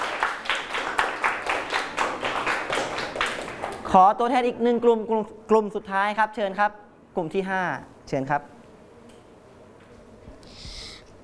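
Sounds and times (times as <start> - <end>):
classroom clapping: 0.0 - 4.0
speech: 3.9 - 8.6.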